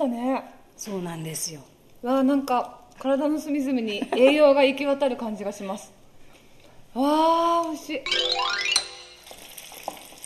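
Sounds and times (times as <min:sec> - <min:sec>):
speech: 0:00.0 - 0:06.0, 0:06.9 - 0:08.8
battered rakkyo tempura frying in hot oil: 0:09.0 - 0:10.2.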